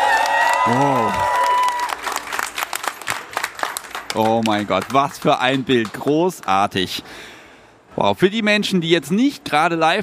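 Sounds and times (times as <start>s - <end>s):
live audience applause and crowd noise at a trade fair: 0.0s - 6.8s
speech: 0.6s - 1.4s, 4.2s - 7.3s, 8.0s - 10.0s.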